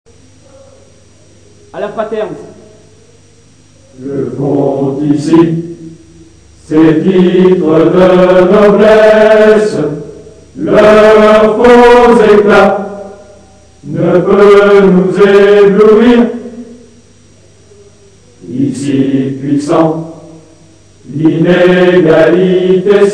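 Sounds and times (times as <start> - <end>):
hymn: 3.8 - 23.1.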